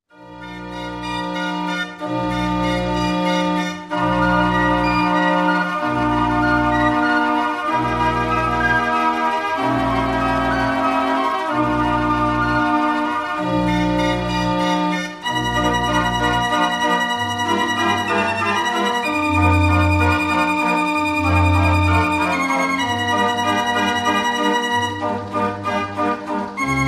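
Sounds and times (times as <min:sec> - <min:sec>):
pan flute melody: 0:00.3 - 0:26.8.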